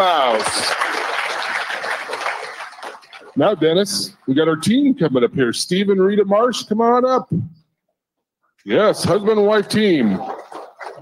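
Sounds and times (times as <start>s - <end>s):
crowd applauding: 0.0s - 3.4s
speech: 0.4s - 0.9s, 3.4s - 7.6s, 8.6s - 10.4s.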